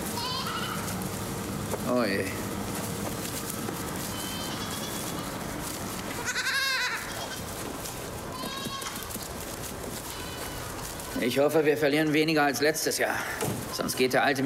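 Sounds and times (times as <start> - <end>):
young goats bleating: 0.0 - 1.1, 3.2 - 11.3
steady rustling: 0.0 - 14.4
speech: 1.9 - 2.5, 11.2 - 14.4.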